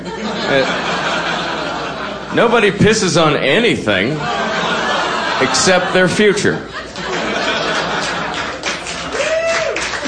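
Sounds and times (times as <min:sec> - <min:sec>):
laughter and chatter: 0:00.0 - 0:02.6, 0:04.0 - 0:10.0
speech: 0:00.5 - 0:00.9, 0:02.3 - 0:04.4, 0:05.4 - 0:06.8
audience applause: 0:07.0 - 0:10.0.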